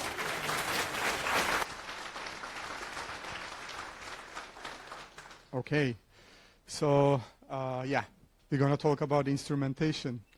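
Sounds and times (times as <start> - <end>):
audience applause: 0.0 - 5.5
speech: 5.6 - 6.0, 6.7 - 10.3.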